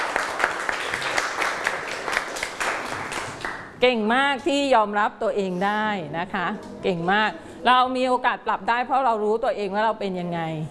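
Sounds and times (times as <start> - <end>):
audience applause for a group: 0.0 - 3.8
speech: 3.8 - 10.7.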